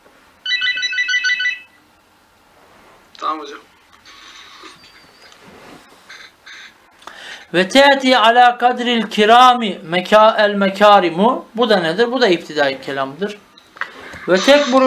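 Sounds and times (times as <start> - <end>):
bright electronic phone ringtone: 0.4 - 1.8
speech: 3.3 - 3.7, 7.5 - 13.5, 14.3 - 14.8.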